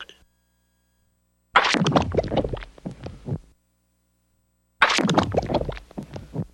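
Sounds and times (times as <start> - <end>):
squishy gooey comedy sounds: 1.6 - 3.4, 4.9 - 6.5.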